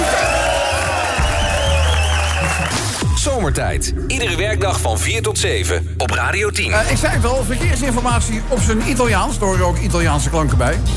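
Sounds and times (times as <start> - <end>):
audience applause and cheering: 0.0 - 3.2
high whistle-like tones: 0.2 - 3.3
speech: 3.4 - 10.9.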